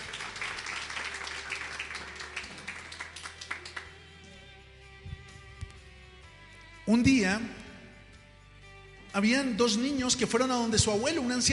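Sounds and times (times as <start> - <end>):
audience applause: 0.0 - 4.0
speech: 6.9 - 7.6, 9.2 - 11.5.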